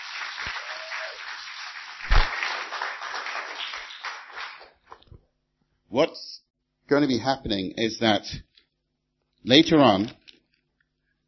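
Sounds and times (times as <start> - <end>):
crowd applause: 0.0 - 4.8
loud thump: 2.1 - 2.3
speech: 5.9 - 8.5, 9.4 - 10.2.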